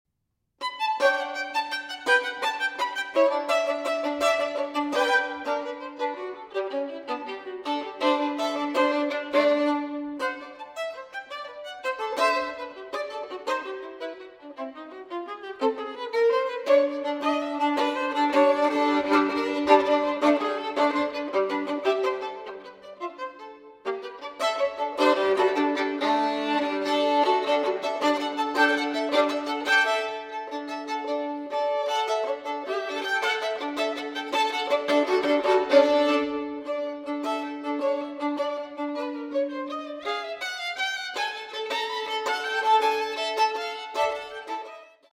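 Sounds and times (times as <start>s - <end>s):
fiddle dance jig: 0.6s - 45.1s.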